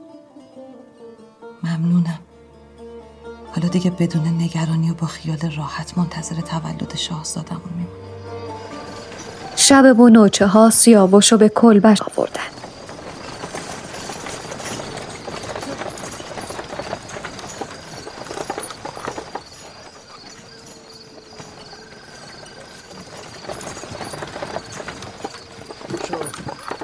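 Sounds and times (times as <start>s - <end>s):
speech: 1.6s - 2.3s, 3.6s - 8.4s, 9.6s - 12.5s
horse-drawn cart wheels rumbling and rattling: 3.5s - 26.8s
horse-drawn cart hooves clip-clopping: 3.7s - 26.8s.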